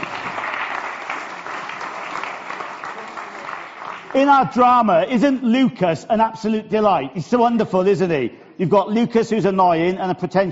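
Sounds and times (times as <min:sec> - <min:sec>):
audience round of applause: 0:00.0 - 0:04.6
speech: 0:04.1 - 0:10.5.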